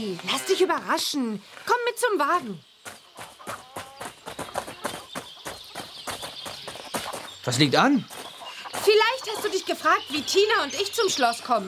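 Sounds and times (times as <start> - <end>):
speech: 0.0 - 3.0, 7.4 - 8.2, 8.8 - 11.6
horse hooves clip-clopping: 2.8 - 11.6.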